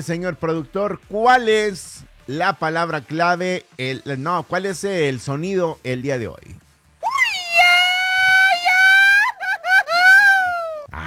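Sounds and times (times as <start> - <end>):
speech: 0.0 - 6.6
celebratory shout like at patriotic fiestas: 7.0 - 10.9.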